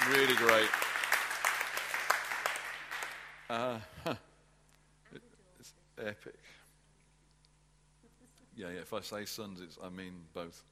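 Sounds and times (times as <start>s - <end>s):
church audience clapping: 0.0s - 3.6s
speech: 0.1s - 1.0s, 3.5s - 4.3s, 6.0s - 6.6s, 8.6s - 10.7s.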